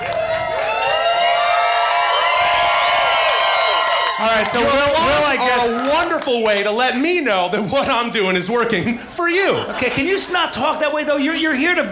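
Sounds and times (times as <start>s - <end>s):
live crowd cheering and whooping: 0.0s - 6.3s
speech: 4.3s - 11.9s
laughter: 7.4s - 11.9s.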